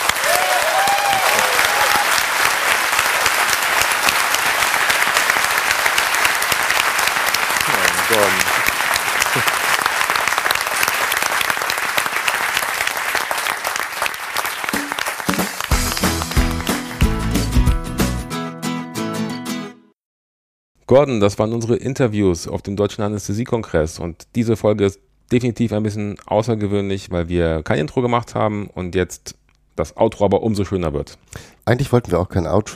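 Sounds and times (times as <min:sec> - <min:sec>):
audience applause: 0:00.0 - 0:18.2
speech: 0:08.1 - 0:08.4, 0:20.9 - 0:32.7.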